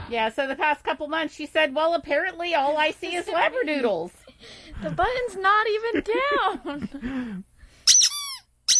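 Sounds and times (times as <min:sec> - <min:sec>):
speech: 0:00.1 - 0:04.2, 0:04.7 - 0:07.5
squeaky toy squeezed: 0:07.9 - 0:08.7.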